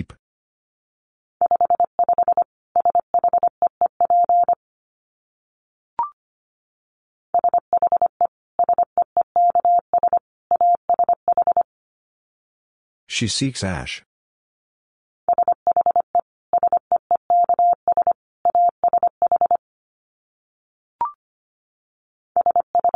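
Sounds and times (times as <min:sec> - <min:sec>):
rapid Morse code at 25 words per minute: 0:01.4 - 0:04.6, 0:07.4 - 0:11.6, 0:15.3 - 0:19.6, 0:22.4 - 0:22.9
speech: 0:13.1 - 0:14.1.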